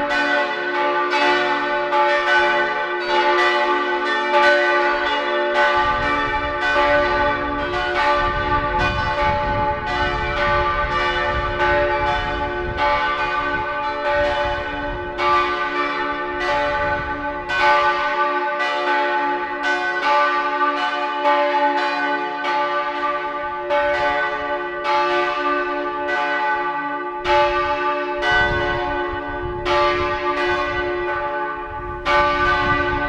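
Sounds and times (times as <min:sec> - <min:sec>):
parish church bells ringing in Freienbach: 0:00.0 - 0:33.0.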